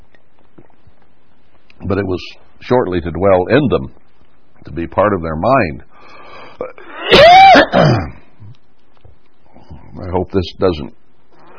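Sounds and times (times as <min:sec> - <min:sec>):
speech: 0:01.9 - 0:04.0, 0:04.6 - 0:06.2, 0:07.6 - 0:08.1, 0:10.0 - 0:11.0
speaker coughing with a voice strained from talking: 0:06.6 - 0:08.2.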